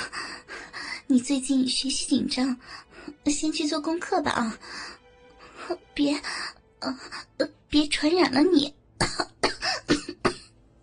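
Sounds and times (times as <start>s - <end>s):
speech: 1.1s - 5.0s, 5.7s - 9.4s
cough: 9.0s - 10.6s.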